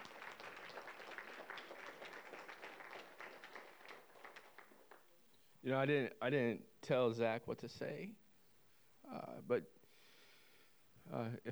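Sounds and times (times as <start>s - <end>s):
audience applause: 0.0s - 5.1s
speech: 5.6s - 8.2s, 9.4s - 9.8s, 11.1s - 11.5s.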